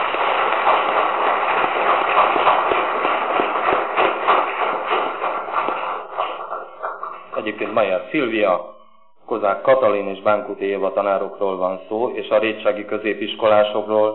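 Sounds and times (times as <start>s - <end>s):
audience applause: 0.0s - 8.2s
speech: 7.8s - 14.1s.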